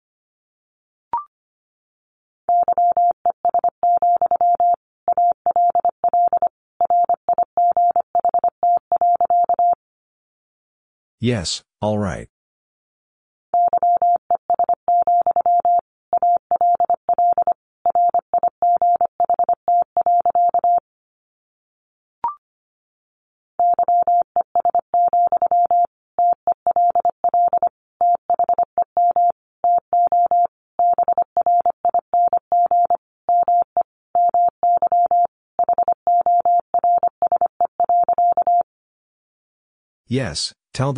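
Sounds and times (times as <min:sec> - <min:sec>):
Morse code beeps at 25 words per minute: 0:02.5 - 0:09.8, 0:13.6 - 0:20.8, 0:23.6 - 0:38.6
speech: 0:11.2 - 0:12.3, 0:40.1 - 0:40.9.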